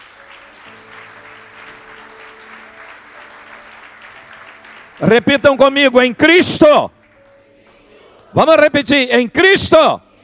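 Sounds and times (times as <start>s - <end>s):
audience applause: 0.0s - 6.0s
speech: 5.0s - 7.0s, 8.3s - 10.0s.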